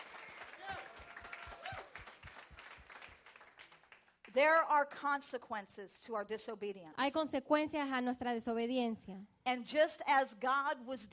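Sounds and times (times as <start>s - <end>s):
faint applause from a church audience: 0.0s - 4.4s
speech: 4.4s - 11.1s.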